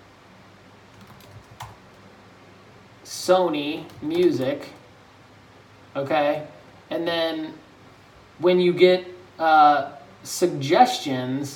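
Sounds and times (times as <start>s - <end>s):
typing on a computer keyboard: 0.9s - 2.0s
speech: 3.1s - 4.8s, 6.0s - 7.6s, 8.4s - 11.5s.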